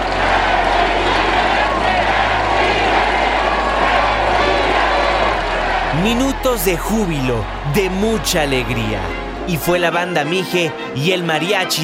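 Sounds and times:
crowd of 130,000 shouting: 0:00.0 - 0:10.6
speech: 0:06.0 - 0:11.8.

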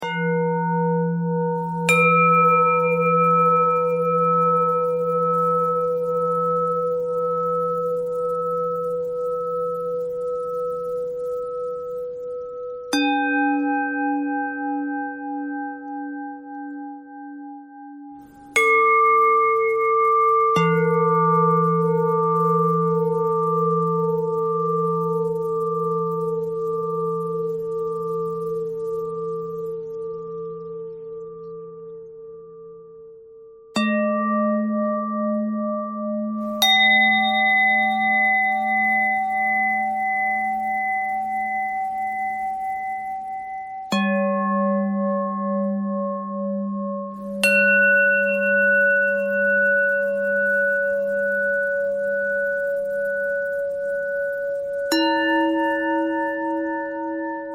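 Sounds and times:
bending bell tone: 0:00.0 - 0:57.5.

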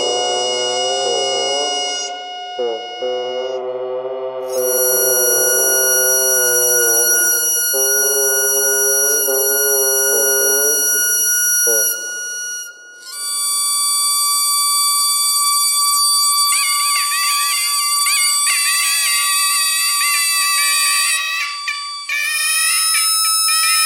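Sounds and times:
bagpipe: 0:00.0 - 0:03.7, 0:04.5 - 0:23.8
radio noise: 0:00.0 - 0:03.7.

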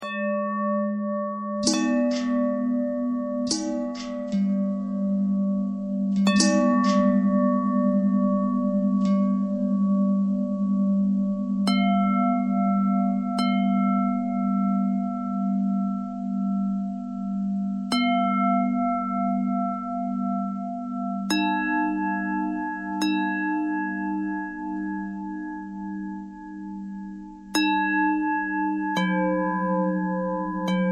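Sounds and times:
long pentatonic bell thread: 0:00.0 - 0:30.9.

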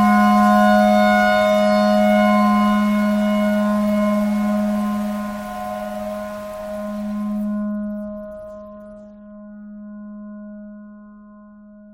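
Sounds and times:
tornado siren imitated on clarinet: 0:00.0 - 0:07.8.

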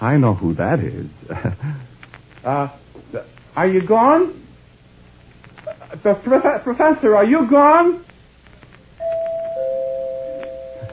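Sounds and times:
speech: 0:00.0 - 0:01.5, 0:02.4 - 0:04.4, 0:05.9 - 0:08.1
doorbell ringing: 0:09.0 - 0:10.9.

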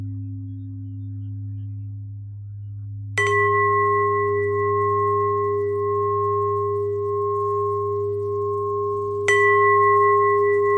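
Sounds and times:
bells: 0:03.2 - 0:10.7.

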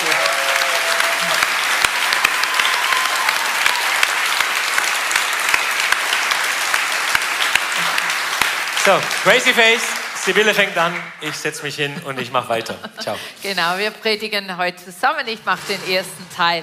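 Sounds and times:
audience applause: 0:00.0 - 0:12.6
speech: 0:08.9 - 0:16.6.

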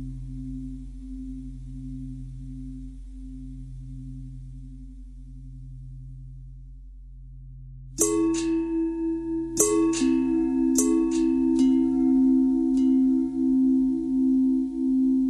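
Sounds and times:
long bell ringing: 0:08.0 - 0:15.2.

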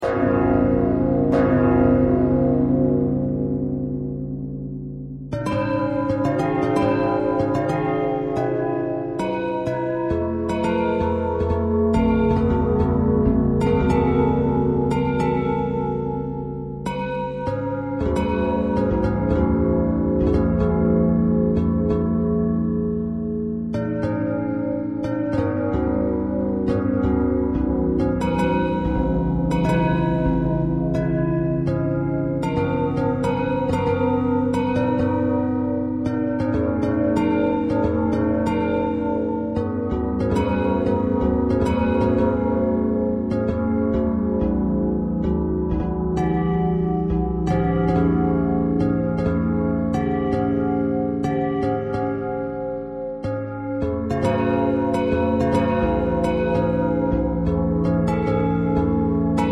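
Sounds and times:
bells ringing: 0:00.0 - 0:59.4.

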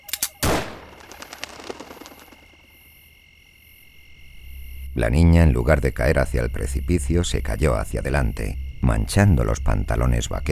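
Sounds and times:
gunshot: 0:00.4 - 0:02.4
speech: 0:05.0 - 0:10.4.

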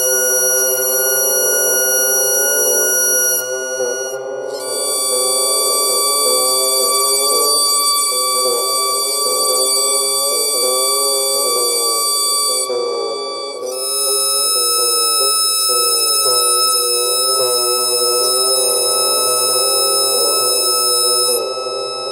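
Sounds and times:
bagpipe: 0:00.0 - 0:22.1.

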